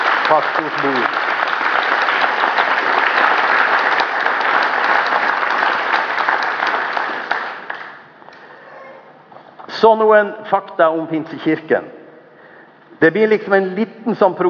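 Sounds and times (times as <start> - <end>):
audience applause: 0.0 - 8.0
speech: 0.3 - 1.7, 9.8 - 12.0, 13.0 - 14.4.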